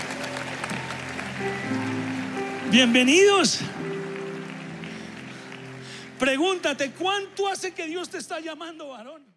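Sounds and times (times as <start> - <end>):
audience applauding in welcome: 0.0 - 8.6
speech: 2.7 - 3.9, 6.2 - 9.3.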